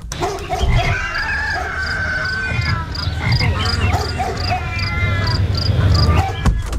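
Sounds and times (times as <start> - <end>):
dog barking outdoors through open studio window: 0.2 - 2.0, 3.5 - 5.4, 5.9 - 6.4
croaking animal calls outdoors: 0.2 - 6.6
crickets chirping outdoors through open studio window: 0.6 - 6.3.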